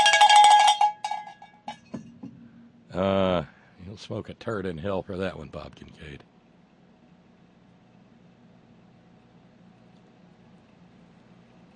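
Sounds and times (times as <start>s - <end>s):
small bright bell jangling: 0.0s - 1.8s
speech: 3.0s - 6.3s.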